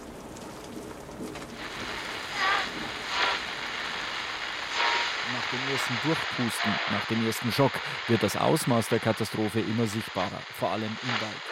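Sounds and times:
heavy rain shower: 0.0s - 11.5s
speech: 5.6s - 11.5s.

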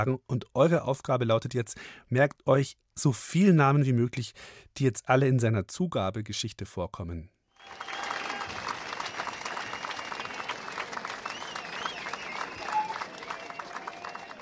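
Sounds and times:
speech: 0.0s - 8.0s
audience applause: 7.6s - 14.4s.

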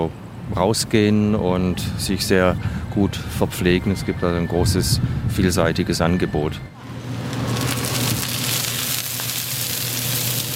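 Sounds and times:
speech: 0.0s - 6.8s
oyster omelette sizzling and spattering on griddle: 6.9s - 10.5s.

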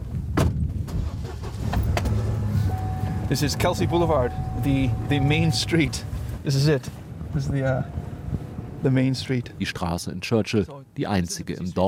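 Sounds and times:
truck driving along a road: 0.9s - 10.0s
speech: 3.3s - 8.0s, 8.8s - 11.8s.

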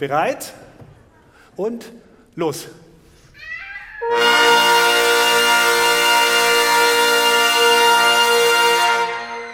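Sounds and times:
speech: 0.0s - 0.7s, 1.6s - 2.8s
brass instruments playing as loudly as possible: 4.0s - 9.5s.

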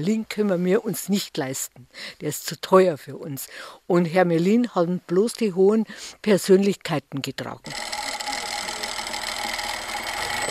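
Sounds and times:
speech: 0.0s - 8.0s
sewing machine rattling in a costume sewing room: 7.7s - 10.4s.

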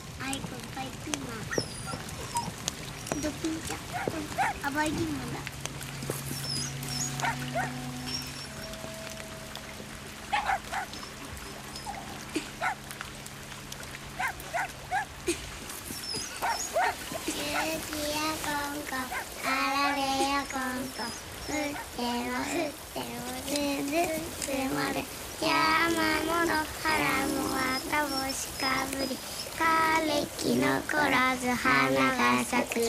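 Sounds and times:
low steady hum: 0.0s - 32.8s
small dog whimpering eagerly: 1.4s - 4.6s, 6.2s - 8.8s, 10.4s - 12.8s, 15.8s - 22.8s, 25.9s - 29.9s.

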